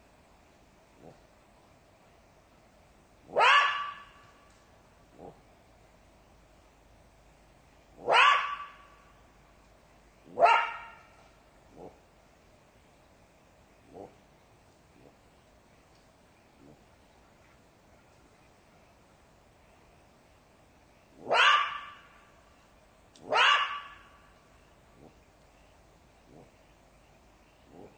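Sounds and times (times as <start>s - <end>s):
jackal yelping: 3.3s - 4.2s, 8.0s - 8.9s, 10.3s - 11.1s, 21.2s - 22.2s, 23.2s - 24.2s.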